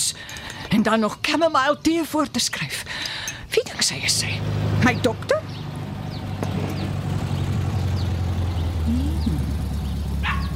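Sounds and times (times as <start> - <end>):
speech: 0.1 - 3.0, 3.6 - 5.4
old kombi van pulling in: 4.0 - 10.5.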